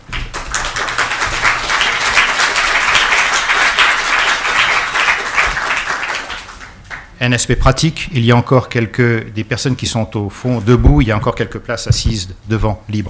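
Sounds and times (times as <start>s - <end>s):
audience applause: 0.0s - 7.2s
speech: 7.2s - 13.0s.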